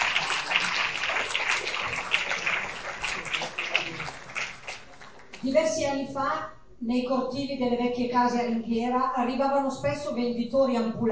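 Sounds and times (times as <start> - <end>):
audience applause: 0.0 - 5.4
speech: 5.4 - 11.1.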